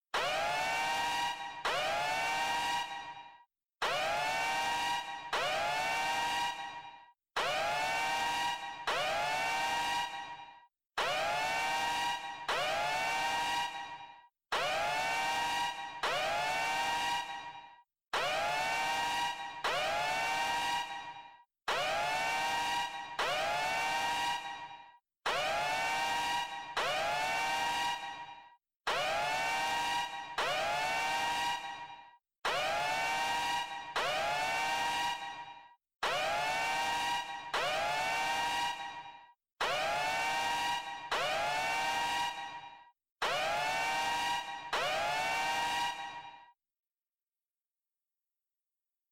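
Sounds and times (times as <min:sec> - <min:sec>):
alarm: 0:00.0 - 0:47.1.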